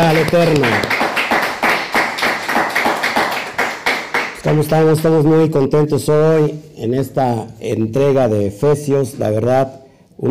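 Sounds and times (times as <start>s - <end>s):
speech: 0.0s - 1.0s, 4.4s - 10.2s
audience applause: 0.0s - 4.6s.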